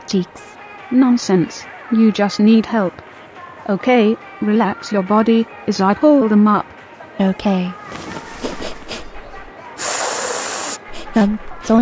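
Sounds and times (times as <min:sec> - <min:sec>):
speech: 0:00.1 - 0:03.0, 0:03.7 - 0:08.0, 0:11.2 - 0:11.8
person with dust allergies snorting and sniffling through a stuffy nose: 0:07.9 - 0:11.8.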